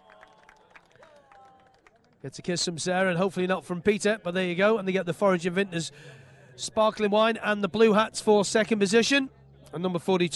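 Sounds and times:
crowd applauding: 0.0 - 2.8
speech: 2.2 - 10.3.

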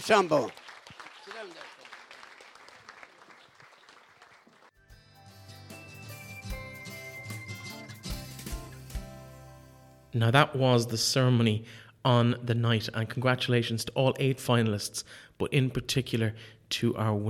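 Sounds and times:
speech: 0.0 - 0.6, 10.1 - 17.2
audience applause: 0.0 - 4.8
loud bright music with sustained tones and steady beat: 4.8 - 10.1.

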